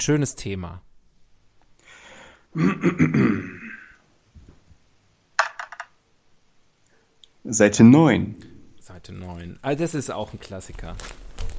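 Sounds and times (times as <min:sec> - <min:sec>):
speech: 0:00.0 - 0:00.9, 0:02.5 - 0:03.7, 0:07.4 - 0:11.5
dice clattering on a hard surface: 0:05.4 - 0:06.0.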